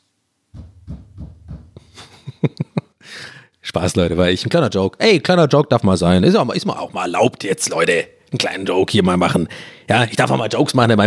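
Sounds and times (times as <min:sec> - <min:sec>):
knocking: 0:00.6 - 0:02.1
speech: 0:03.7 - 0:11.0.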